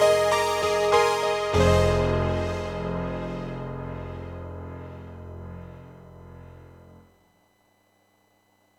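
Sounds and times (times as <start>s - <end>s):
synth pad piano sound from a synthesizer module: 0.0s - 7.2s.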